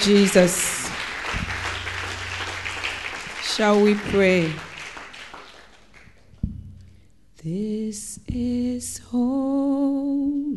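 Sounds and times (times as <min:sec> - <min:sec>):
speech: 0:00.0 - 0:01.4, 0:03.6 - 0:04.7, 0:07.4 - 0:10.5
audience hand clapping: 0:00.0 - 0:06.3.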